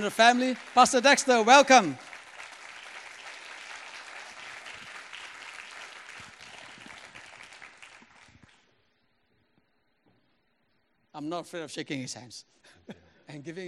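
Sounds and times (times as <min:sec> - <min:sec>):
speech: 0:00.0 - 0:02.1, 0:11.2 - 0:13.6
audience clapping at a church gathering: 0:00.0 - 0:08.7.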